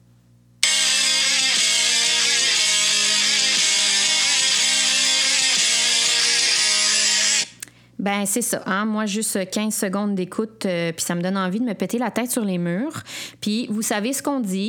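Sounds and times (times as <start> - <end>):
heavy metal distorted guitars playing a rapid riff: 0.6 - 7.6
speech: 8.0 - 14.6.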